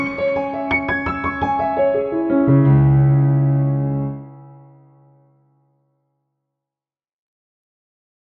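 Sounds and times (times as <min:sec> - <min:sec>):
piano: 0:00.0 - 0:05.8.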